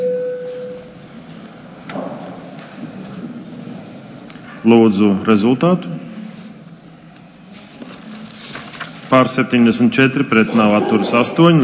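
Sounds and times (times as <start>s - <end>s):
parliament voting bell electronic tone: 0.0s - 0.8s
low murmur of noise: 0.7s - 11.6s
speech: 4.6s - 6.0s, 9.1s - 11.6s.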